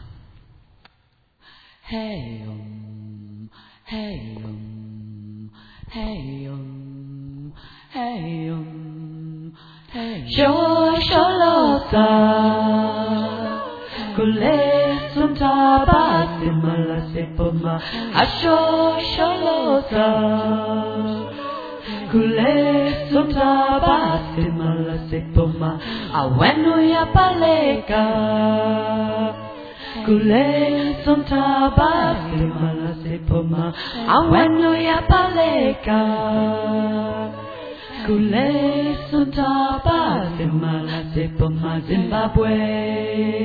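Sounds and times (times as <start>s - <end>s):
tenor singing: 1.9s - 43.3s.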